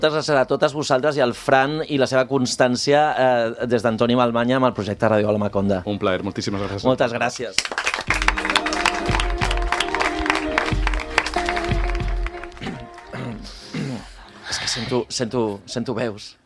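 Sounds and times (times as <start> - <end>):
speech: 0.0 - 7.8, 14.9 - 16.4
audience applause: 7.6 - 13.6.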